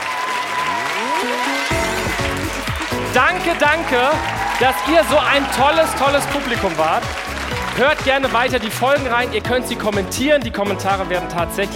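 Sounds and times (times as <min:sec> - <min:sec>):
audience applause: 0:00.0 - 0:09.3
speech: 0:03.1 - 0:11.7.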